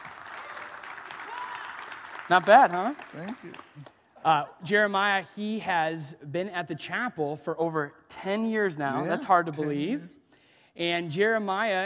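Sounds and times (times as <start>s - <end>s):
audience applause: 0.0s - 3.9s
speech: 2.3s - 10.2s, 10.8s - 11.8s.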